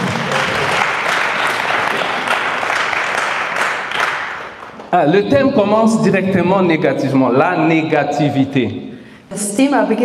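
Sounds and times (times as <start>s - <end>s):
audience applause: 0.0s - 5.3s
speech: 4.9s - 10.0s.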